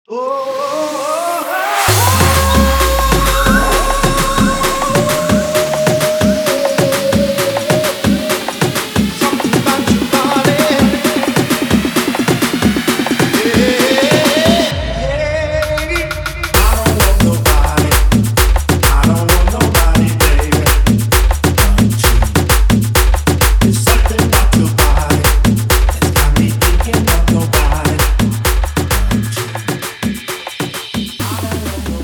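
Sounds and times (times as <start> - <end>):
131 BPM intro outro music: 0.3 - 32.0.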